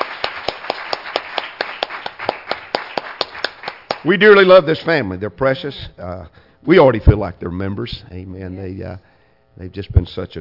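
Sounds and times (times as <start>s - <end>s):
church congregation clapping to welcome a family: 0.0s - 4.5s
speech: 4.0s - 10.3s.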